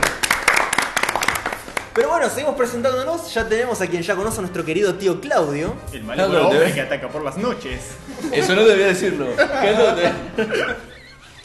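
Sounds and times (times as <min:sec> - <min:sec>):
applause from a small group: 0:00.0 - 0:02.1
speech: 0:02.0 - 0:10.9
laughter: 0:06.3 - 0:11.4.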